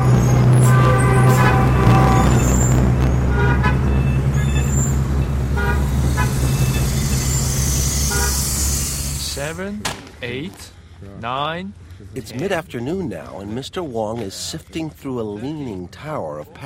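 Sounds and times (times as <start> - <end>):
car horns honking in Beijing traffic: 0.0 - 9.7
busy Beijing street traffic engine and road noise: 0.0 - 15.1
speech: 9.6 - 16.6.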